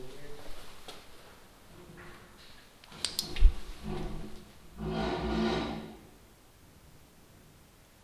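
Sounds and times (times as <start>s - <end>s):
bed sliding: 3.2s - 6.1s.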